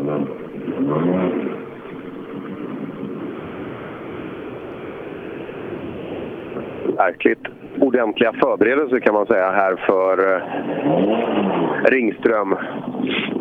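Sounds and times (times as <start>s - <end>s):
Toyota Corolla approaching and driving past: 0.0s - 8.1s, 9.7s - 11.9s
speech: 7.0s - 13.3s.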